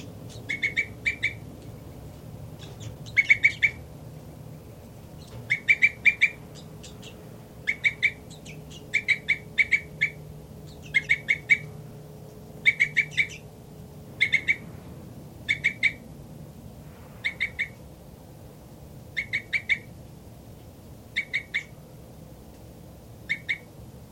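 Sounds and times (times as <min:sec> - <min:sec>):
bird calls in a nest cell: 0:00.0 - 0:03.9, 0:05.1 - 0:13.5, 0:14.1 - 0:14.7, 0:15.4 - 0:16.1, 0:17.2 - 0:17.8, 0:19.1 - 0:19.9, 0:21.1 - 0:21.8, 0:23.2 - 0:24.0
low hum: 0:00.0 - 0:24.0.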